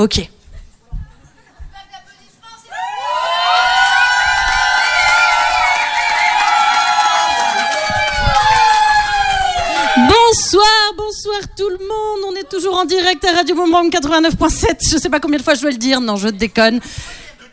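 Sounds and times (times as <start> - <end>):
speech: 0.0 - 0.4, 10.3 - 17.2
audience applause: 2.8 - 10.3.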